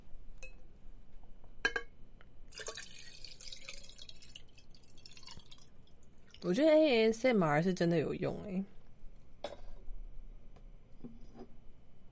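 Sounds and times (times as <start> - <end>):
water poured into a cup: 2.5 - 6.6
speech: 6.4 - 8.8.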